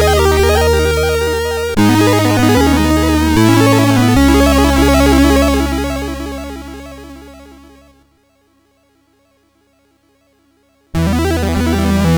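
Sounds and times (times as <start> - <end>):
game over chiptune jingle on a sound chip: 0.0 - 7.2, 11.0 - 12.1.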